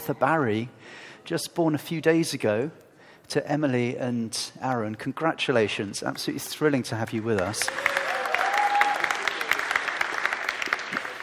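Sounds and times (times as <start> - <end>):
speech: 0.0 - 8.0
audience clapping: 7.1 - 11.2.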